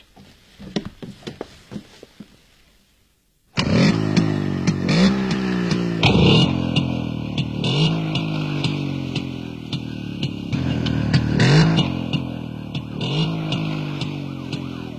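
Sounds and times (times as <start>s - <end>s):
motorcycle engine starting and revving: 3.6s - 14.9s
police car siren wailing: 10.6s - 14.9s.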